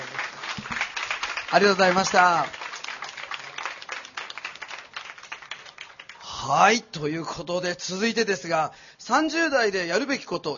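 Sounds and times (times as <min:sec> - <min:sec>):
audience applause: 0:00.0 - 0:06.2
speech: 0:01.5 - 0:02.6, 0:06.5 - 0:10.5.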